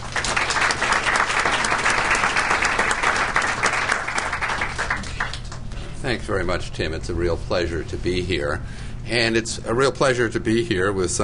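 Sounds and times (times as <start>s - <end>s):
audience applause welcoming a speaker at a legal panel event: 0.0s - 5.7s
speech: 6.1s - 11.2s.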